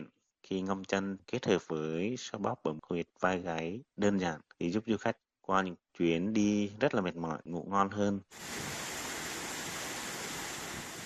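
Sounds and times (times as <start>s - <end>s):
speech: 0.5s - 8.8s
rushing waterfall: 8.4s - 11.0s.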